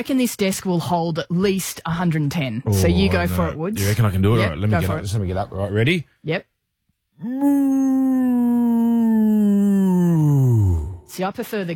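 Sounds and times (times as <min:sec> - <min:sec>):
speech: 0:00.0 - 0:06.5, 0:07.2 - 0:08.6, 0:11.1 - 0:11.7
person imitating a cow mooing: 0:02.7 - 0:03.5, 0:07.2 - 0:11.1.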